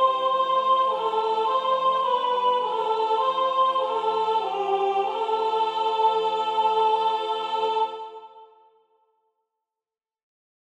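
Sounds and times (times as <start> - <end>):
soprano singing: 0.0 - 8.5.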